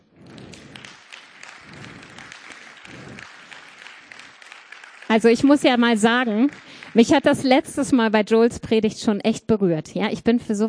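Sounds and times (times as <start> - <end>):
audience applause: 0.2 - 8.0
speech: 5.2 - 10.6.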